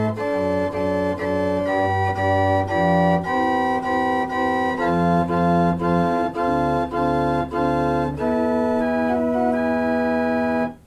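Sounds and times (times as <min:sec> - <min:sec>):
house organ: 0:00.0 - 0:10.8.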